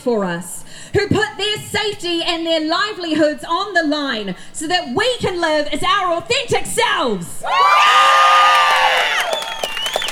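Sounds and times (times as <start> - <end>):
speech: 0.0 - 8.6
activist rally crowd cheering and whooping: 7.4 - 10.0
scattered clapping: 7.8 - 10.0.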